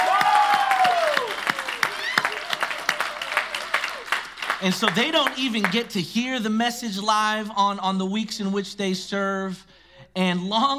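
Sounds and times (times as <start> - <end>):
audience round of applause for kids ministry volunteers: 0.0 - 5.9
speech: 4.6 - 10.7.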